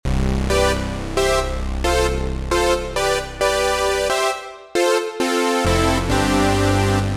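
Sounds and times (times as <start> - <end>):
brass instruments: 0.5 - 7.1.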